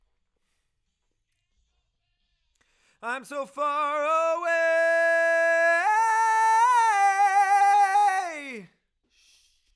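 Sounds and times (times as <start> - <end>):
chorus singing: 3.1 - 8.7.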